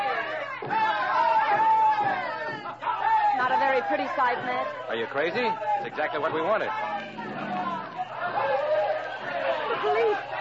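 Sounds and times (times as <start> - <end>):
students shouting and chanting at a demonstration: 0.0 - 10.4
speech: 3.9 - 7.1, 9.8 - 10.3.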